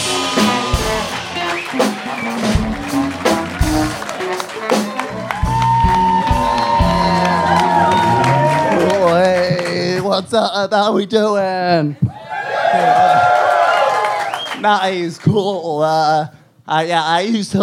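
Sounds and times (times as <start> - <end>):
audience whoops and shouted calls: 0.0 - 9.9, 12.1 - 14.6
audience clapping: 0.0 - 10.3, 12.4 - 15.4
speech: 10.3 - 12.1, 14.6 - 17.6.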